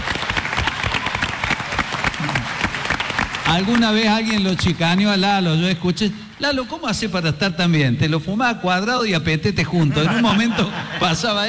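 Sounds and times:
audience applause for a well-liked media figure: 0.0s - 5.4s
speech: 3.5s - 11.4s
laughter: 9.7s - 11.4s.

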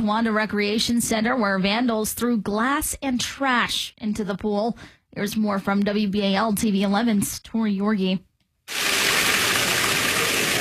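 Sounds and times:
speech: 0.0s - 8.8s
water gushing into the drained Towanda Recreation Center swimming pool: 8.7s - 10.5s.

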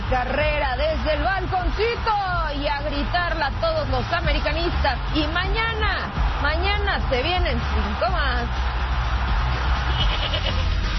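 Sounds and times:
speech: 0.1s - 8.7s, 10.0s - 10.8s
goat bleating: 9.9s - 10.6s.

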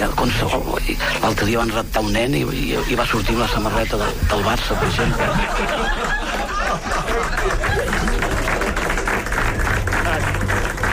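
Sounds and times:
speech: 0.0s - 8.1s
audience laughter: 3.8s - 10.8s
audience applause: 4.7s - 10.9s.

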